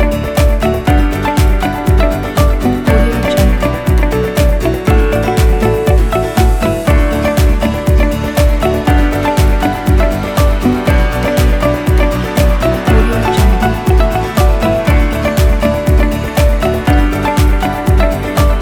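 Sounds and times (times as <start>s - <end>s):
uplifting inspiring upbeat corporate music: 0.0s - 18.6s.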